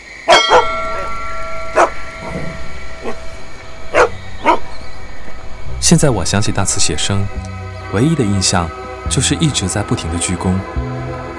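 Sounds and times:
dog barking: 0:00.3 - 0:00.8, 0:01.7 - 0:02.4, 0:03.9 - 0:04.6
steady high-pitched hum: 0:00.4 - 0:08.2
speech: 0:05.9 - 0:10.9.

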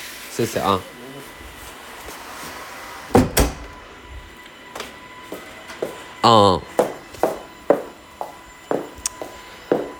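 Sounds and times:
speech: 0:00.4 - 0:01.0, 0:06.2 - 0:06.8
door closing: 0:03.1 - 0:03.9.

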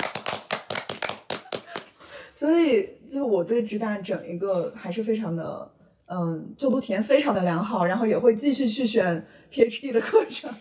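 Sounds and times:
hand clapping: 0:00.0 - 0:02.0
speech: 0:02.4 - 0:10.5.

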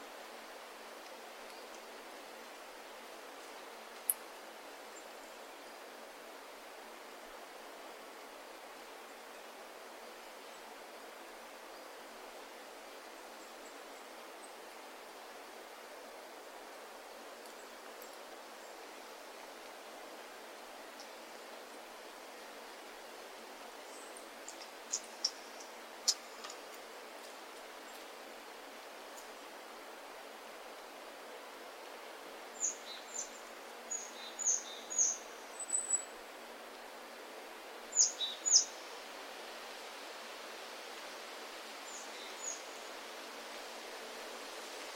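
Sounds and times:
wind moving steadily through the forest: 0:00.0 - 0:44.9
faint high ticks: 0:03.4 - 0:04.4.

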